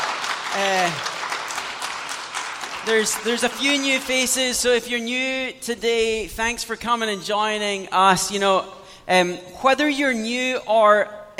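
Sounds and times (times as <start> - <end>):
crowd clapping: 0.0 - 4.9
speech: 0.5 - 1.1, 2.8 - 11.3.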